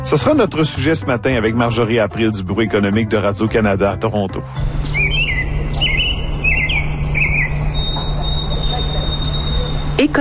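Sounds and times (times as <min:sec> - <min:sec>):
speech: 0:00.0 - 0:05.2, 0:10.0 - 0:10.2
birds chirping at a lake in Quebec or Ontario: 0:04.5 - 0:10.2
low hum: 0:04.6 - 0:10.2.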